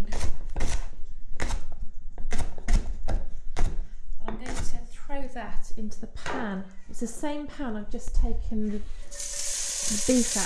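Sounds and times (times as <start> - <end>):
knife chopping leek: 0.0 - 4.8
speech: 5.4 - 10.4.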